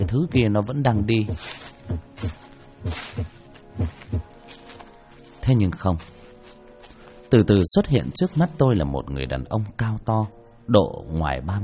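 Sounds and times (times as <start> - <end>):
speech: 0.0 - 4.1, 5.5 - 6.2, 7.3 - 11.6
loud pounding heartbeat: 1.3 - 4.3.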